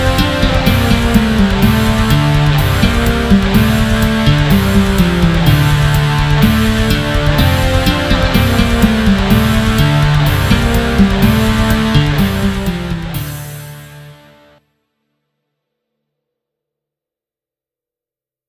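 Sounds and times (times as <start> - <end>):
rock instrumental: 0.0 - 14.6.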